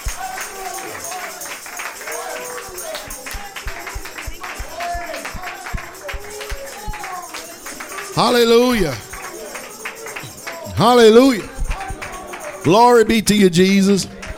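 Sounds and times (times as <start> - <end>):
hand clapping: 0.0 - 14.3
foot stomping: 2.9 - 7.0
speech: 8.2 - 9.1, 10.8 - 11.5, 12.6 - 14.2.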